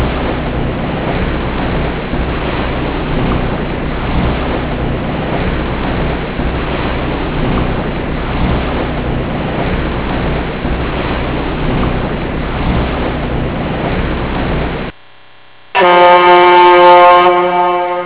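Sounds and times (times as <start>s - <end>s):
boat: 0.0s - 18.0s.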